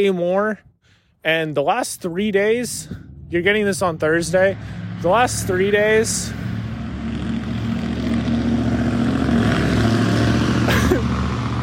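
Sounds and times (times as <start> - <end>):
speech: 0.0 - 6.6
loud car with faulty engine driving past: 2.8 - 11.6.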